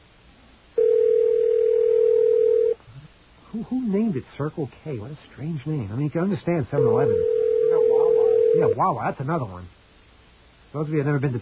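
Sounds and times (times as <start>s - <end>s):
telephone line ringing: 0.8s - 2.8s, 6.8s - 8.8s
speech: 3.7s - 7.4s, 8.5s - 9.8s, 10.7s - 11.4s.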